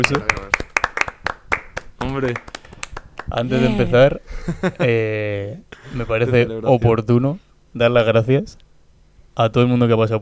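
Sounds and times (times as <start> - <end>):
speech: 0.0 - 0.6, 2.0 - 2.5, 3.3 - 8.6, 9.4 - 10.2
laughter: 0.0 - 0.8, 2.2 - 5.1
hand claps: 0.0 - 3.6.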